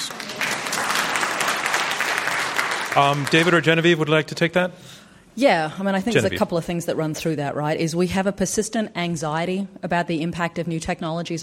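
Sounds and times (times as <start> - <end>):
audience applause: 0.0 - 4.1
speech: 2.9 - 11.4.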